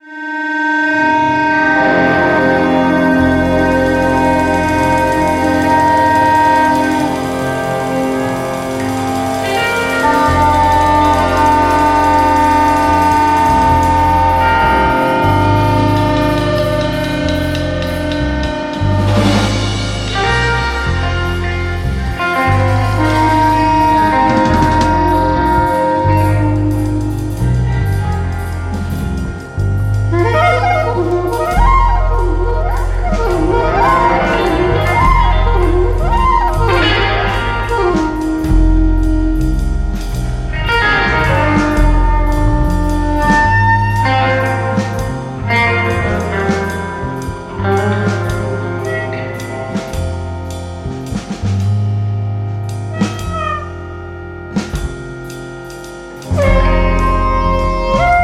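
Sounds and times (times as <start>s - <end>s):
spiritual jazz waltz: 0.2s - 58.2s.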